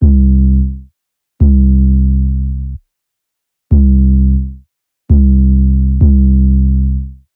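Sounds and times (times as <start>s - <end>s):
bass: 0.0s - 2.8s, 3.7s - 7.3s.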